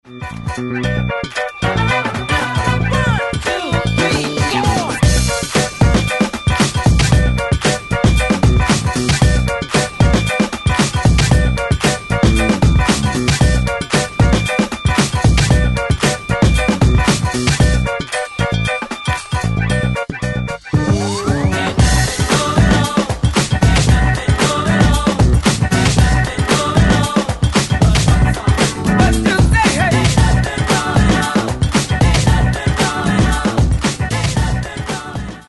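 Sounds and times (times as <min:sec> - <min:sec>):
funky song: 0:00.1 - 0:35.4.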